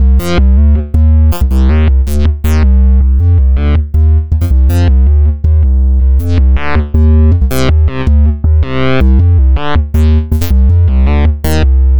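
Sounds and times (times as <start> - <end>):
synth bass: 0.0 - 11.9.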